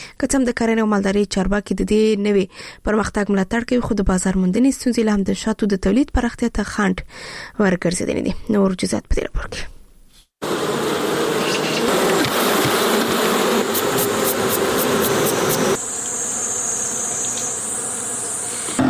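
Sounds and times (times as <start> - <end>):
speech: 0.2 - 9.8
honey bees buzzing at a bee farm in Helmand province: 10.4 - 18.8.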